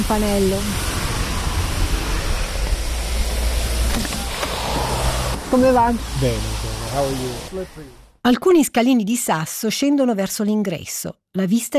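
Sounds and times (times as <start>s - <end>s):
speech: 0.0s - 0.9s, 5.5s - 11.7s
heavy rain downpour: 0.0s - 8.2s.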